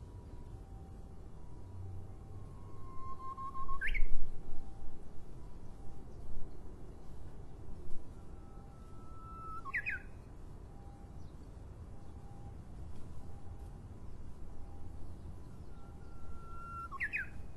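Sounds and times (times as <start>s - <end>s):
Japanese bush warbler singing: 0.2s - 17.5s.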